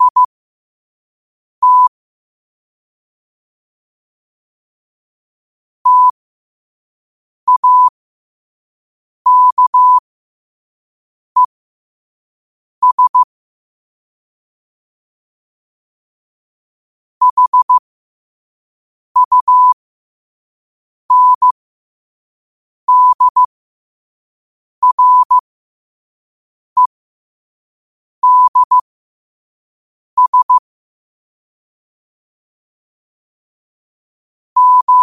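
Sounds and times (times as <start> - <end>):
morse code at 5 wpm: 0.0 - 0.3, 1.6 - 1.9, 5.9 - 6.1, 7.5 - 7.9, 9.3 - 10.0, 12.8 - 13.3, 17.2 - 17.8, 19.2 - 19.8, 21.1 - 21.6, 22.9 - 23.5, 24.8 - 25.4, 28.2 - 28.9, 30.2 - 30.6, 34.6 - 35.0.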